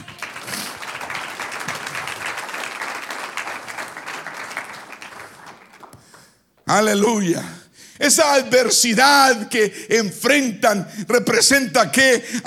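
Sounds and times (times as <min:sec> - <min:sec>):
audience applause: 0:00.0 - 0:06.2
speech: 0:06.7 - 0:12.4.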